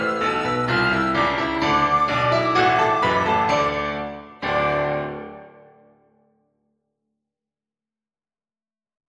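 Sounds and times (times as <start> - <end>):
flute playing rock music: 0.0 - 5.6.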